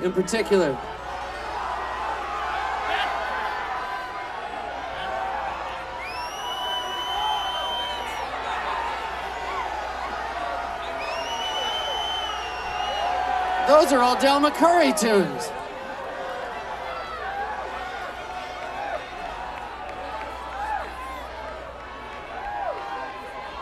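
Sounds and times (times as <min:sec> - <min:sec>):
speech: 0:00.0 - 0:01.0, 0:13.8 - 0:15.6
audience roaring and cheering: 0:00.0 - 0:23.6
long whistles: 0:06.0 - 0:08.4, 0:10.8 - 0:13.5.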